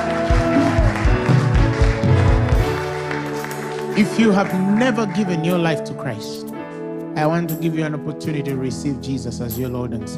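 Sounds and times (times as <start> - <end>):
crowd clapping: 0.0 - 6.4
speech: 4.0 - 6.5, 7.2 - 10.1.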